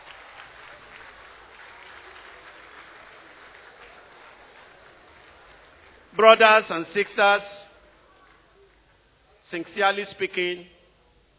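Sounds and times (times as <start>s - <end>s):
audience clapping for a speaker: 0.0s - 6.8s
speech: 6.2s - 7.6s, 9.5s - 10.8s.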